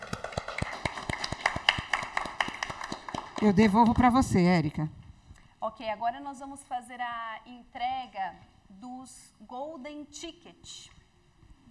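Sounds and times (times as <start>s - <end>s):
audience applause: 0.0s - 3.8s
speech: 3.4s - 5.0s, 5.6s - 11.0s.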